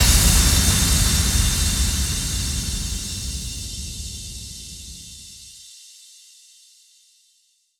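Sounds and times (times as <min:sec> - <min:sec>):
impact sound effect: 0:00.0 - 0:05.6.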